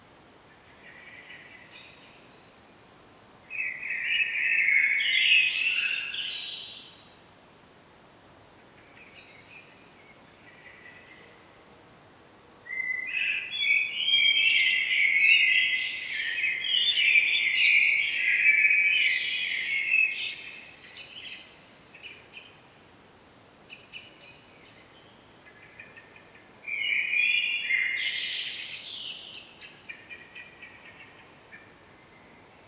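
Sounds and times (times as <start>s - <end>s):
common blackbird song: 3.5s - 7.2s, 8.8s - 11.4s, 12.7s - 22.8s, 23.7s - 32.6s.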